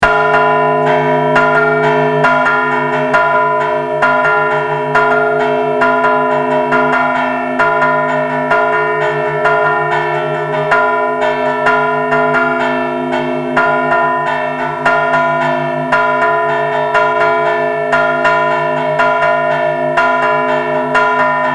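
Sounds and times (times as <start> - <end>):
bell: 0.0 - 21.5.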